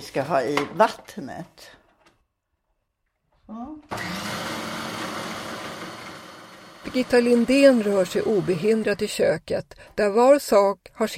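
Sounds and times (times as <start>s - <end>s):
speech: 0.0s - 1.8s, 6.9s - 11.1s
electric mixer blending oil mixture: 3.9s - 9.1s.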